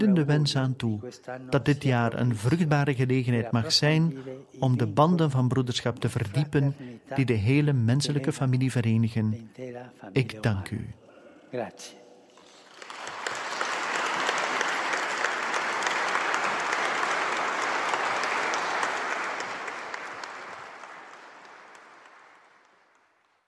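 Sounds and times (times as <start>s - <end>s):
speech: 0.0s - 12.0s
large applause from ambassadors: 12.3s - 23.4s.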